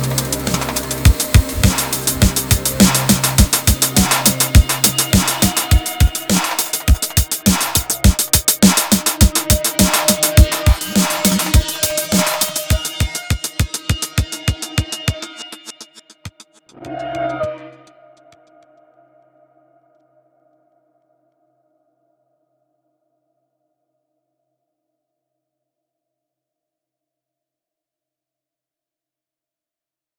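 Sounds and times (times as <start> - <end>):
Arturia synth effect fragments: 0.0 - 15.9.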